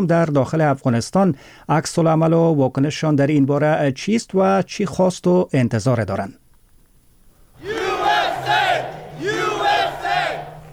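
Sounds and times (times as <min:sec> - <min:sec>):
speech: 0:00.0 - 0:06.4
crowd of supporters cheering in celebration: 0:07.6 - 0:10.7.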